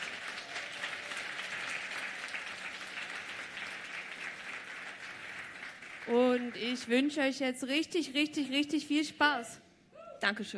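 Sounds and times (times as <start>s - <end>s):
audience applause: 0.0s - 6.8s
speech: 6.1s - 9.6s, 10.2s - 10.5s.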